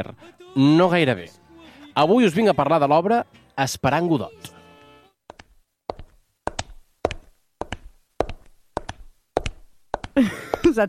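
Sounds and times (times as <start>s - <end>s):
speech: 0.0s - 1.4s, 2.0s - 4.6s, 10.2s - 10.8s
footsteps of an actress on a hard stage floor: 5.3s - 10.8s.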